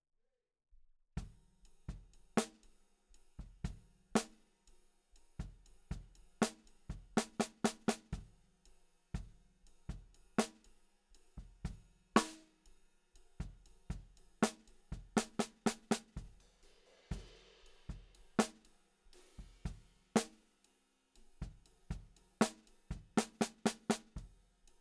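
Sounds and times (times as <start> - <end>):
snare drum: 3.4 - 4.5, 5.4 - 8.3, 9.2 - 10.7, 11.4 - 12.6, 13.4 - 20.5, 21.4 - 24.4.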